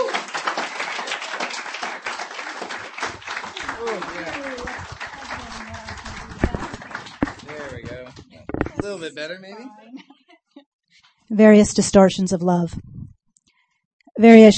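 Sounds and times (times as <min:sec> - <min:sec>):
audience applause: 0:00.0 - 0:08.9
speech: 0:03.8 - 0:04.4, 0:08.9 - 0:09.8, 0:11.3 - 0:12.8, 0:14.2 - 0:14.5.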